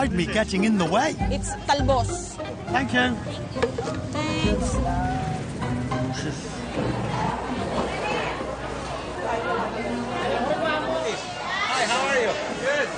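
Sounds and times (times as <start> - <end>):
speech: 0.0 - 5.3, 6.1 - 8.0
market crowd shouting and chattering: 4.4 - 5.6, 6.6 - 12.9.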